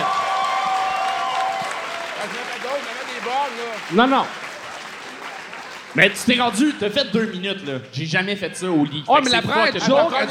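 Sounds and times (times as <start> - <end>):
excited cheering voices: 0.0 - 5.6
audience applause: 0.0 - 6.8
speech: 2.2 - 4.4, 6.0 - 10.2.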